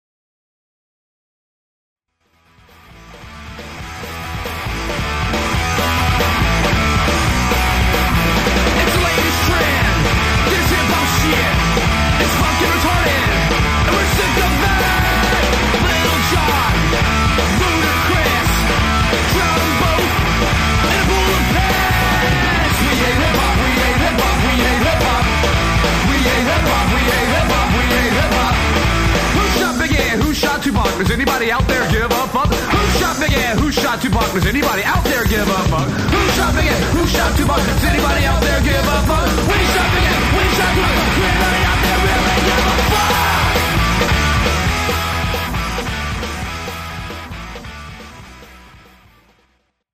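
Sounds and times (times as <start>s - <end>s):
garage rock music: 2.2s - 49.8s.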